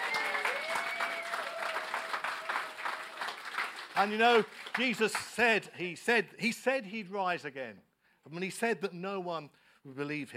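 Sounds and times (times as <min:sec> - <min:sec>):
audience applause for the kids: 0:00.0 - 0:05.4
speech: 0:04.0 - 0:10.3.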